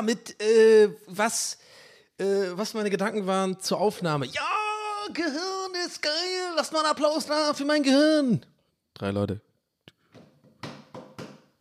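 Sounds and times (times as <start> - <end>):
speech: 0.0 - 9.5
hand knocking on a table: 10.1 - 11.5.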